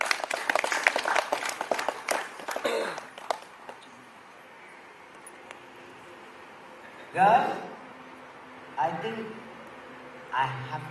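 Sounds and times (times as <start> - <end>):
audience clapping: 0.0 - 3.8
speech: 7.2 - 7.6, 8.8 - 9.4.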